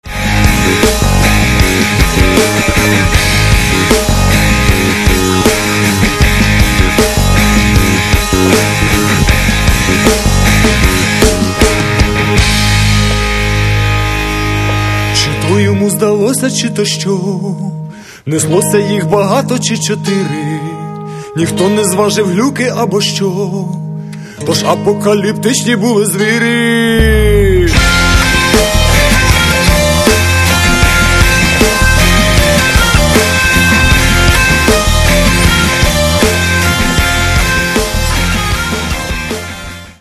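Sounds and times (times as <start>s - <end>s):
rock music: 0.0s - 39.9s.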